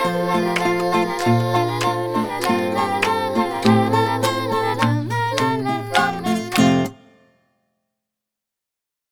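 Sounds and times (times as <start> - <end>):
children's song: 0.0 - 7.2.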